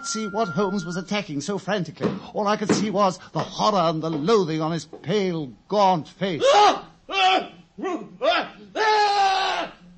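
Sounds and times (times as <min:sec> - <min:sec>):
speech: 0:00.0 - 0:08.8
horrible human scream: 0:06.4 - 0:09.9.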